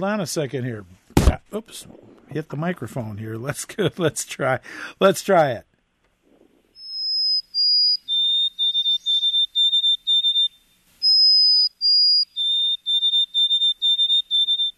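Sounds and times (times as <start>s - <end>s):
speech: 0.0s - 5.7s
white-throated sparrow song: 6.8s - 14.7s.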